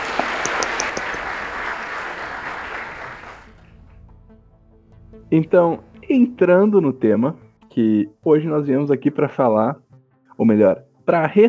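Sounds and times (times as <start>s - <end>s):
crowd applause: 0.0s - 3.9s
speech: 5.3s - 9.8s, 10.4s - 11.4s.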